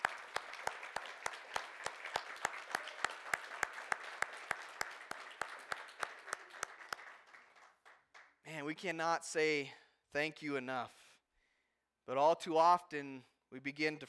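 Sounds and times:
audience applause: 0:00.0 - 0:08.2
speech: 0:08.7 - 0:11.0, 0:12.1 - 0:14.0.

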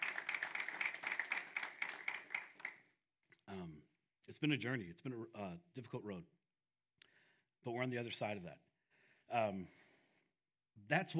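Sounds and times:
audience clapping: 0:00.0 - 0:02.9
speech: 0:03.5 - 0:06.4, 0:07.6 - 0:08.7, 0:09.3 - 0:09.8, 0:10.8 - 0:11.1.

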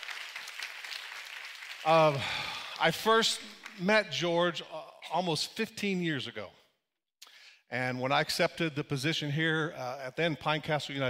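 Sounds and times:
church congregation applauding to welcome a speaker: 0:00.0 - 0:03.9
speech: 0:01.8 - 0:06.6, 0:07.7 - 0:11.0.

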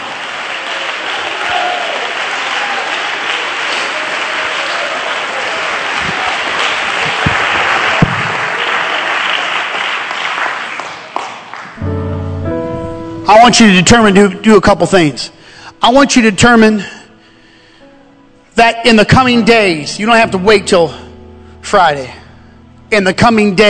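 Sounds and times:
audience shouting: 0:00.0 - 0:09.5
audience clapping: 0:00.0 - 0:12.0
speech: 0:13.4 - 0:17.0, 0:18.6 - 0:21.0, 0:21.6 - 0:22.2, 0:22.9 - 0:23.6.

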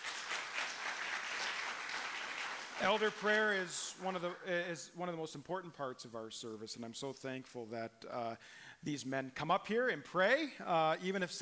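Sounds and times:
audience applauding: 0:00.0 - 0:03.9
speech: 0:02.8 - 0:11.4.

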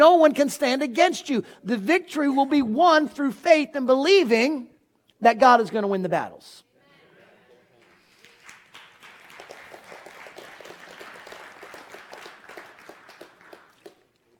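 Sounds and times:
speech: 0:00.0 - 0:06.6
crowd clapping lukewarm: 0:07.8 - 0:14.2.

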